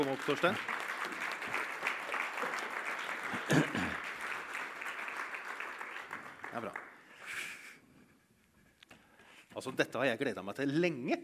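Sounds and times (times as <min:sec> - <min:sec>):
speech: 0:00.0 - 0:00.8, 0:06.6 - 0:06.8, 0:09.6 - 0:11.2
audience applause: 0:00.0 - 0:07.1.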